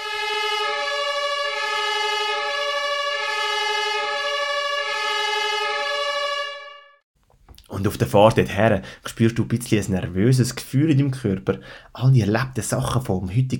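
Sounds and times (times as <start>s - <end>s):
emergency vehicle siren: 0.0s - 7.1s
speech: 7.8s - 13.5s.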